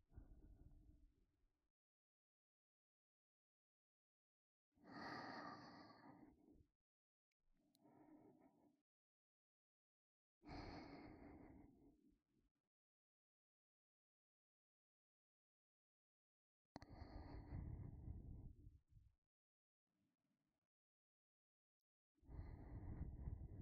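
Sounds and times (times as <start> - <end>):
ASMR breathing in the right ear: 4.8 - 6.6, 7.8 - 8.8, 10.5 - 12.0, 16.8 - 18.6, 22.3 - 23.6.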